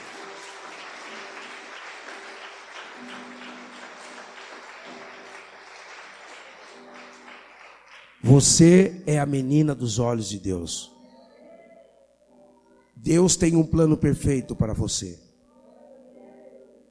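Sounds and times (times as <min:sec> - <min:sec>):
crowd applauding: 0:00.0 - 0:08.6
speech: 0:08.2 - 0:10.9, 0:13.0 - 0:15.3.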